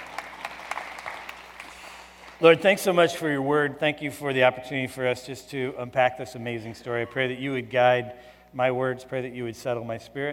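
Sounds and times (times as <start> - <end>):
audience clapping: 0.0 - 2.7
speech: 2.4 - 10.3.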